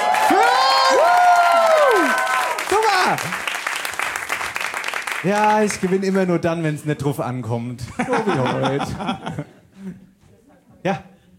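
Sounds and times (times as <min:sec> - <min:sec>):
applause and cheering for winning team: 0:00.0 - 0:06.3
speech: 0:05.2 - 0:10.0, 0:10.8 - 0:11.1
laughter: 0:07.9 - 0:10.0.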